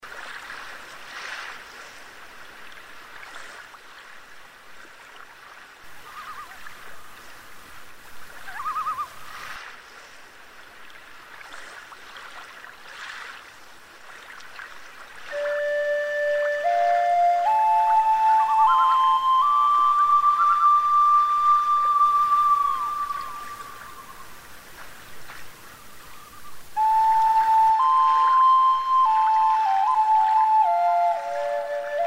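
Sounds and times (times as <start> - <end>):
loon calling: 6.0 - 6.6, 8.4 - 9.2, 15.3 - 24.4, 25.7 - 32.0.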